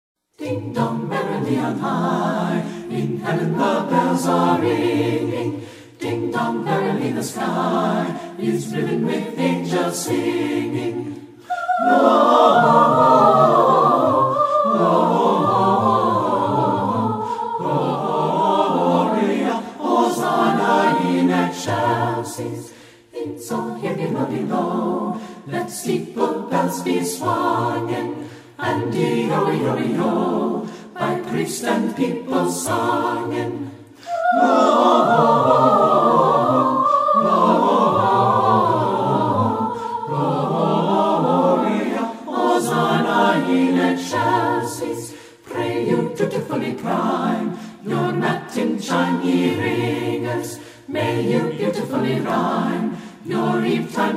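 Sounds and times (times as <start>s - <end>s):
madrigal singers singing a Christmas carol: 0.3s - 54.1s.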